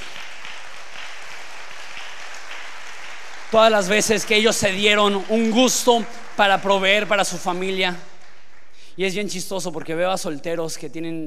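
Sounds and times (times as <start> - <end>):
audience applause: 0.0 - 8.8
speech: 3.5 - 8.1, 9.0 - 11.2.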